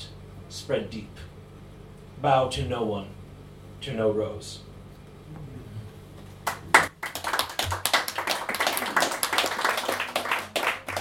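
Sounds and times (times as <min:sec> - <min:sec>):
speech: 0:00.6 - 0:01.2, 0:02.2 - 0:03.2, 0:03.8 - 0:04.7
audience applause after poetry reading: 0:06.4 - 0:11.0.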